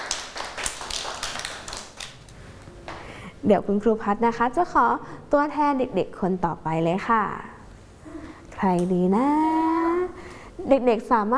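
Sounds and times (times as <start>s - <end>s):
children clapping hands: 0.0s - 2.3s
speech: 3.4s - 7.5s, 8.6s - 9.6s, 10.7s - 11.3s.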